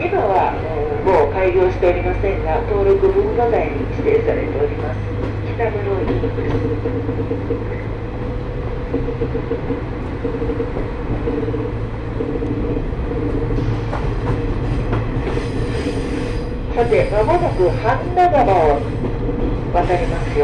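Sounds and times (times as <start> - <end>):
scenic trolley train running on rails: 0.0 - 20.4
speech: 1.4 - 8.2, 8.9 - 20.4
metallic squeals: 14.6 - 19.0.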